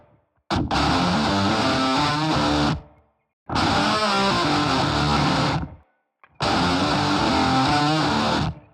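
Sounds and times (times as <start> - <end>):
guitar riff: 0.5 - 2.9, 3.5 - 5.8, 6.4 - 8.7.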